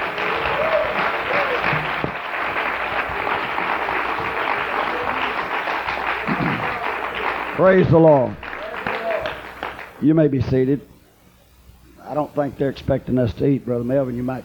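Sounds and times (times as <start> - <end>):
audience clapping: 0.0 - 10.1
speech: 7.6 - 8.4, 10.0 - 10.9, 12.1 - 14.4.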